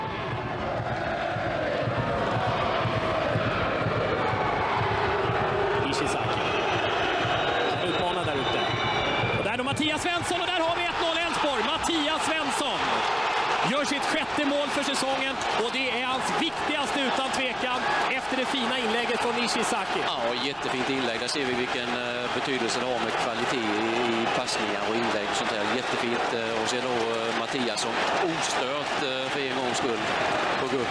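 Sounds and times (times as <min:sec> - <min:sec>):
full stadium crowd at Olympia cheering a headed goal: 0:00.0 - 0:30.8
excited commentator shouting: 0:09.5 - 0:23.8
speech: 0:13.9 - 0:30.8.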